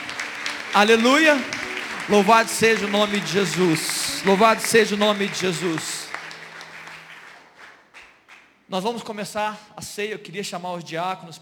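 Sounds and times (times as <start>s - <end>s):
crowd applauding: 0.0s - 8.6s
speech: 0.7s - 5.9s, 8.7s - 11.4s.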